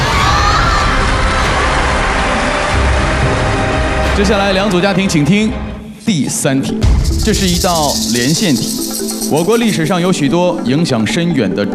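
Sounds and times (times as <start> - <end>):
team supporters cheering and shouting at a family quiz show: 0.0 - 3.8
speech: 4.2 - 11.7.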